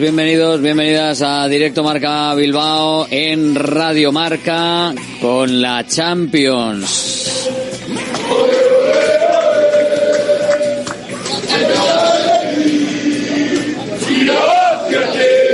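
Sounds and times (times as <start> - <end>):
speech: 0.0 - 9.1
football fans singing in the streets of Dortmund before a Champions League match: 7.0 - 15.5.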